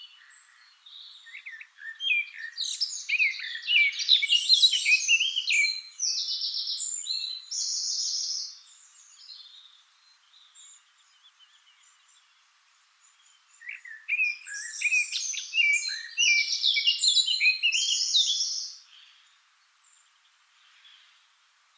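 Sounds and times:
Eurasian blackcap Sylvia atricapilla warbling song with buzzy trills: 0.0 - 21.7.

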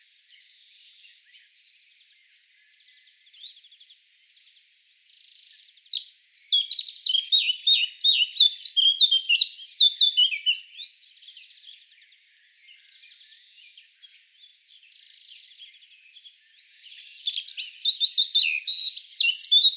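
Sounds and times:
Eurasian blackcap singing: 5.5 - 14.2, 15.2 - 19.7.

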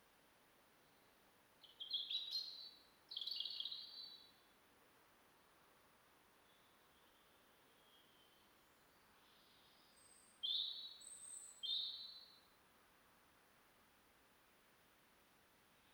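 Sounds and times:
European robin singing, Erithacus rubecula: 1.6 - 4.3, 7.8 - 12.4.

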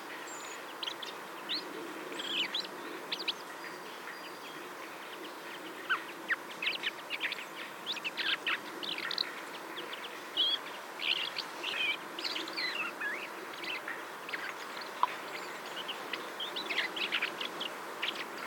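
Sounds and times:
common blackbird calling: 0.2 - 18.4.

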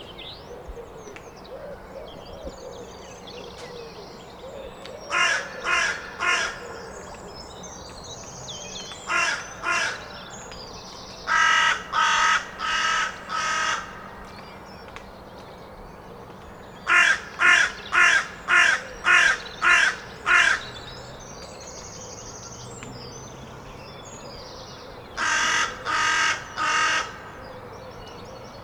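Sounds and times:
carrion crow cawing: 5.1 - 6.7, 9.1 - 10.1, 11.3 - 14.2, 16.9 - 20.7, 25.2 - 27.4.

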